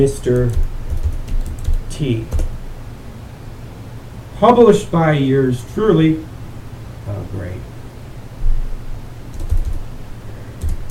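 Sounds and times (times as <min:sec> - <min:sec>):
speech: 0:00.0 - 0:00.7, 0:02.0 - 0:02.4, 0:04.4 - 0:06.3, 0:07.1 - 0:07.7
typing a search on a computer keyboard: 0:00.2 - 0:02.5, 0:09.3 - 0:09.9, 0:10.6 - 0:10.8.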